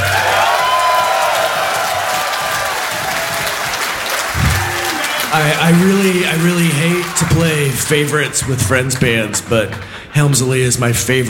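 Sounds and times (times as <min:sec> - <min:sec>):
audience applause: 0:00.0 - 0:09.9
speech: 0:05.4 - 0:11.2.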